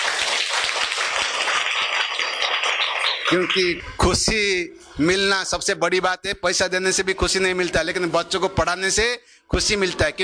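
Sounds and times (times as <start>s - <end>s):
schoolchildren clapping for their teacher: 0.0s - 3.8s
speech: 3.3s - 10.2s.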